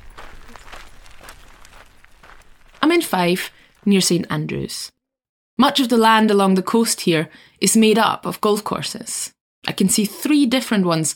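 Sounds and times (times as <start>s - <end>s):
footsteps on a coastal path beside golf courses near St Andrews in Fife: 0.0s - 4.2s
speech: 3.0s - 5.0s, 5.6s - 11.1s.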